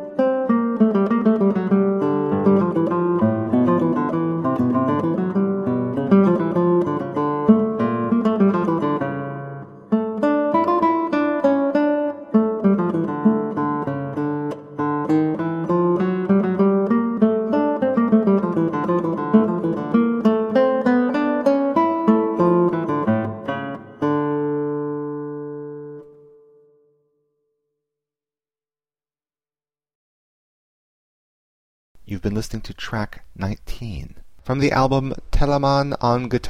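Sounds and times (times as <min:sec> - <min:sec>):
guitar playing an allegro: 0:00.0 - 0:27.2
person speaking: 0:32.0 - 0:36.4.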